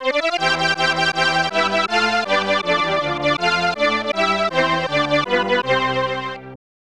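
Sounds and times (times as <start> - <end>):
national anthem: 0.1 - 6.6.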